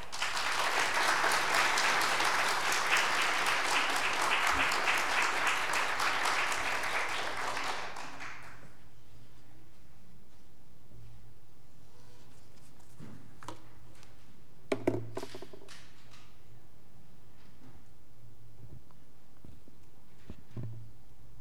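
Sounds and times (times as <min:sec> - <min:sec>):
crowd applause welcoming a speaker: 0:00.0 - 0:08.7.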